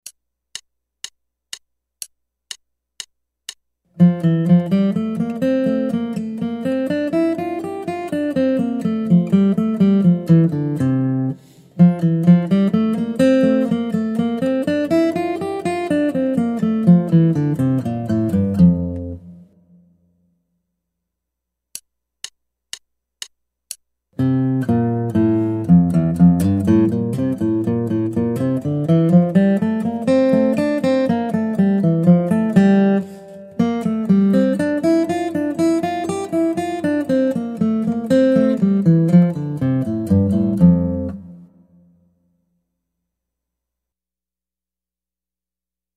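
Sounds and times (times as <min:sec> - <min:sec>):
guitar: 0:03.9 - 0:19.9, 0:24.2 - 0:42.1.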